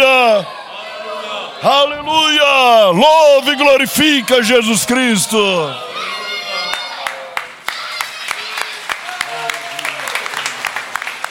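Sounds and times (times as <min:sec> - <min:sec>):
speech: 0:01.8 - 0:06.1
audience applauding: 0:06.6 - 0:11.2.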